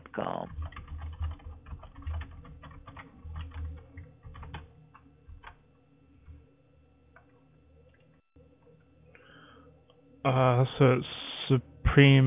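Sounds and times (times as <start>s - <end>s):
typing on a computer keyboard: 0.5s - 5.6s
speech: 10.3s - 12.2s.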